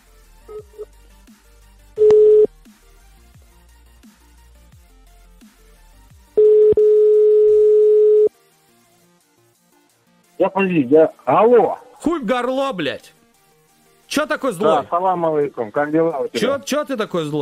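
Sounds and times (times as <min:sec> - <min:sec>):
telephone tones while a call is being dialed: 0:02.0 - 0:02.5, 0:06.4 - 0:08.3
speech: 0:10.5 - 0:13.2, 0:14.1 - 0:17.4.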